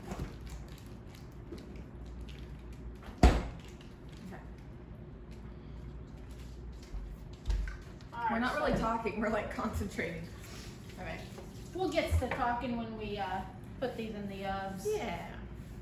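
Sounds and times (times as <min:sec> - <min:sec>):
low steady hum: 0:00.0 - 0:15.7
fridge door thudding shut: 0:03.1 - 0:03.6
speech: 0:08.4 - 0:10.4, 0:11.8 - 0:15.3.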